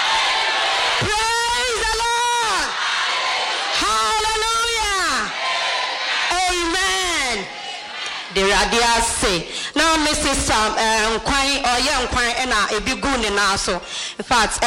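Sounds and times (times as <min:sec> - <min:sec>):
audience shouting in praise: 0:00.0 - 0:08.9
noisy crowd background: 0:00.0 - 0:13.9
speech: 0:08.5 - 0:14.6.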